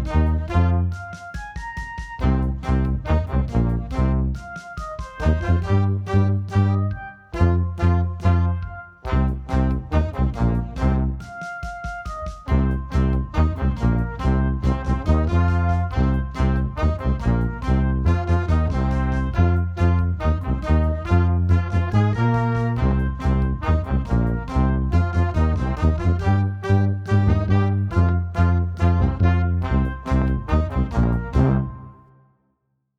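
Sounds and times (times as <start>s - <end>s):
loud tuba playing hard rock blues: 0.0s - 32.0s.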